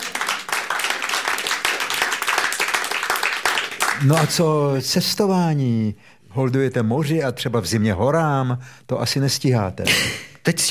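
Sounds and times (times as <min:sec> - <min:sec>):
applause: 0:00.0 - 0:04.5
speech: 0:04.0 - 0:10.7.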